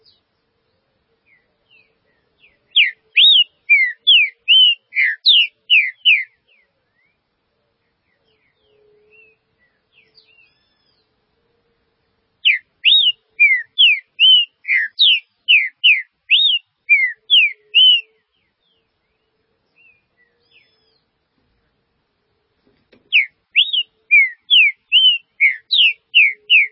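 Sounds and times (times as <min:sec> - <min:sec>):
green-winged saltator song: 0:02.8 - 0:06.3, 0:12.5 - 0:18.1, 0:23.1 - 0:26.7.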